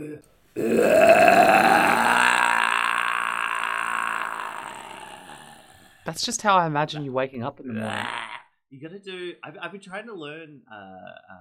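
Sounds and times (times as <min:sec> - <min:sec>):
speech: 0:00.0 - 0:01.0, 0:06.2 - 0:11.3
man's raspy black-metal growl: 0:00.0 - 0:06.0, 0:07.7 - 0:08.5, 0:10.7 - 0:11.3.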